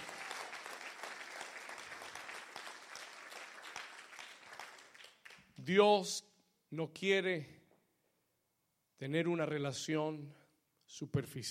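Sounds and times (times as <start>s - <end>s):
audience applause: 0.0s - 5.4s
speech: 5.6s - 7.6s, 9.0s - 11.4s.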